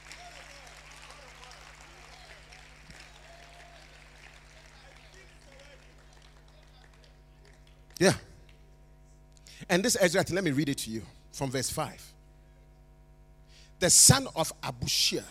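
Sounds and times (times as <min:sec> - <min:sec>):
audience clapping: 0:00.0 - 0:08.7
speech: 0:08.0 - 0:08.2, 0:09.7 - 0:12.2, 0:13.8 - 0:15.2.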